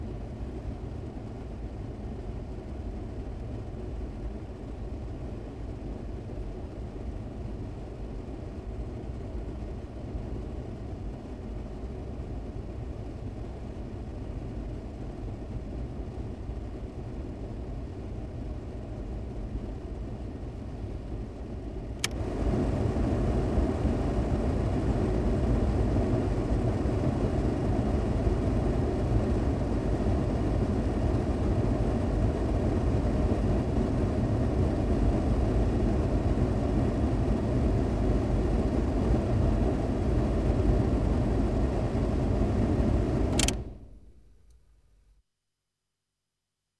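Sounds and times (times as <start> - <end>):
car heater blowing: 0.0 - 44.7.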